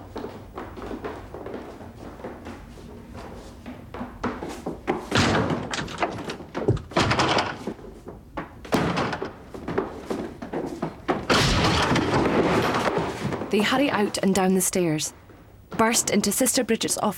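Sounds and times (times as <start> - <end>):
bed base rammed against a dormitory door: 4.8 - 13.6
loud crash of door giving way: 11.3 - 13.1
speech: 13.6 - 15.2, 15.8 - 17.1.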